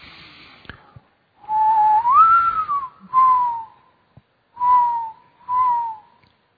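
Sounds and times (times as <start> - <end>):
person whistling an imitation of a mourning dove's call: 1.5 - 3.7, 4.6 - 6.1.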